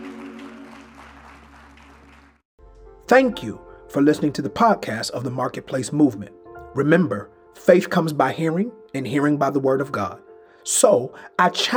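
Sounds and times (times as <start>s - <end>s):
audience clapping hands: 0.0s - 2.4s
speech: 3.1s - 11.7s.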